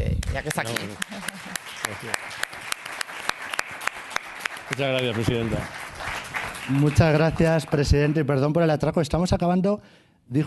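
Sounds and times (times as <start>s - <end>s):
speech: 0.4s - 2.5s, 4.7s - 5.8s, 6.7s - 10.4s
audience applause: 0.4s - 8.6s.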